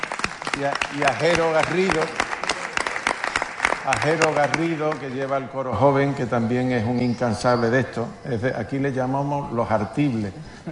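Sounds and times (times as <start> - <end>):
audience applause for a choir: 0.0 - 5.4
speech: 0.6 - 2.2, 3.9 - 10.7.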